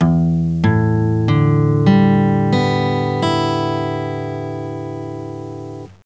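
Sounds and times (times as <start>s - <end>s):
guitar tuning: 0.0s - 6.0s.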